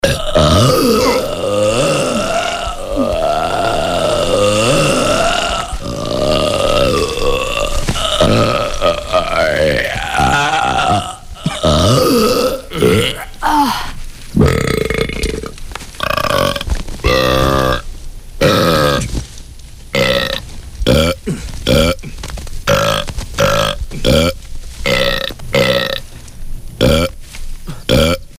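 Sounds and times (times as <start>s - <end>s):
person burping: 0.0s - 17.8s, 18.4s - 19.1s, 20.0s - 26.0s, 26.8s - 28.3s.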